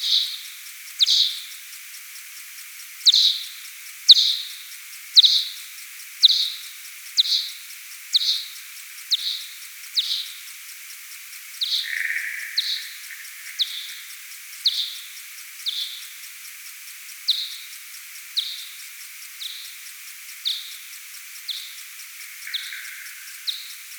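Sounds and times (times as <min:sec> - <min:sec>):
P kuhlii FM signal: 0:00.0 - 0:01.5, 0:03.0 - 0:04.6, 0:06.2 - 0:10.5, 0:11.6 - 0:16.2, 0:17.3 - 0:18.8, 0:20.4 - 0:23.9.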